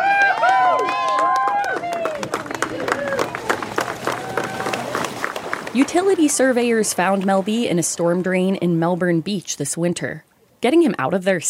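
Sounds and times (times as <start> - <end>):
whoops and shouting voices: 0.0 - 5.0
crowd clapping and cheering outdoors: 0.0 - 7.2
speech: 5.8 - 11.4.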